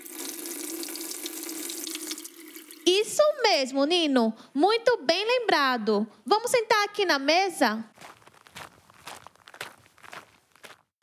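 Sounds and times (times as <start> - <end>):
tap water running into a sink while someone washes their hands: 0.0 - 3.3
speech: 3.2 - 8.0.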